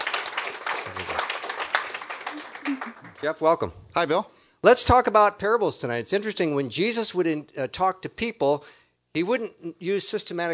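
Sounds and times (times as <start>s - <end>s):
soft golf-style audience applause: 0.0s - 3.6s
speech: 2.8s - 10.5s.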